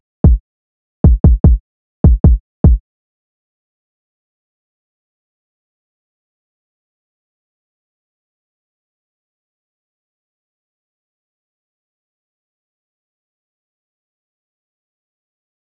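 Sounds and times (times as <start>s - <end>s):
kick drum: 0.2s - 0.4s, 1.0s - 2.8s.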